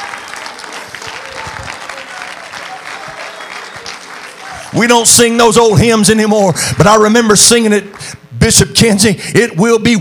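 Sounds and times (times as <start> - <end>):
audience clapping hands: 0.0 - 5.4
speech: 4.7 - 10.0.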